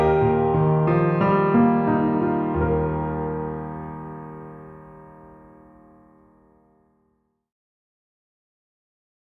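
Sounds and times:
piano: 0.0s - 7.0s.

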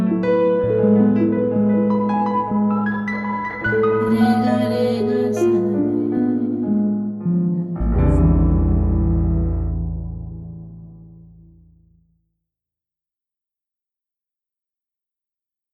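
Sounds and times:
dark melody: 0.2s - 11.9s.

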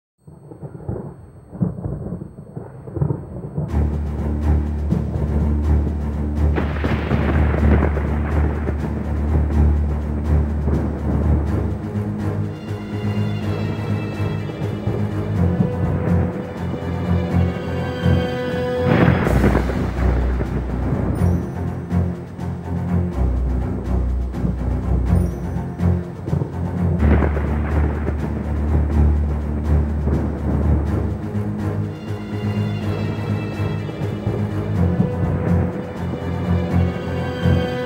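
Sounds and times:
string music: 3.6s - 37.8s.

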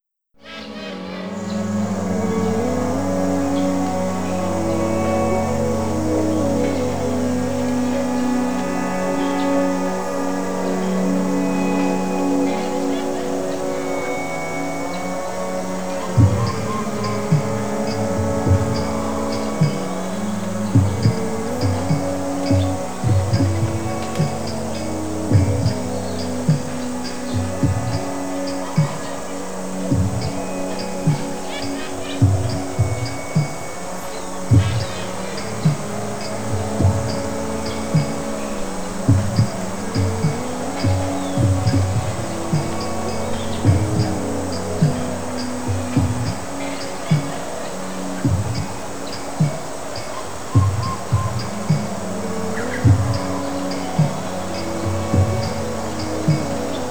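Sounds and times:
jungle ambience: 0.4s - 56.9s.

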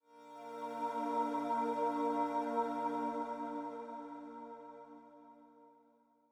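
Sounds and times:
calm synth pad: 0.1s - 5.7s.

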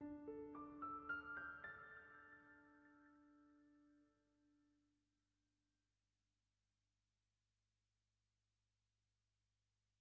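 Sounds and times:
piano: 0.0s - 4.5s.

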